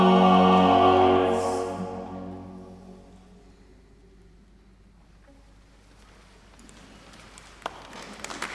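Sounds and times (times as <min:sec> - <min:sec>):
choir singing: 0:00.0 - 0:04.2.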